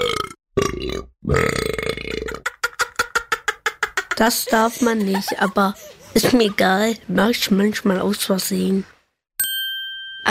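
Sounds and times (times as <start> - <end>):
burp at the dinner table: 0.0 - 2.4
speech: 1.0 - 1.7, 4.2 - 8.9
laughter: 2.4 - 7.0.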